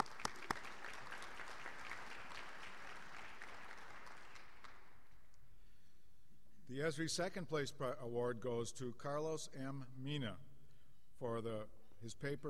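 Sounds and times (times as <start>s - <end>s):
audience applause: 0.0s - 5.0s
speech: 6.7s - 10.5s, 11.2s - 12.4s.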